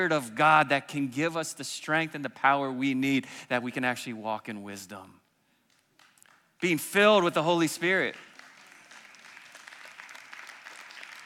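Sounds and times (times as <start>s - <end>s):
speech: 0.0s - 5.2s, 6.6s - 8.3s
polite audience clapping: 5.7s - 6.6s, 7.6s - 11.2s.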